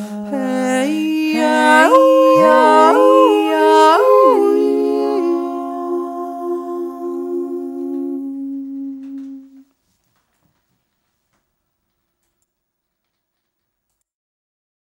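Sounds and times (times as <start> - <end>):
yodel round: 0.0 - 9.6.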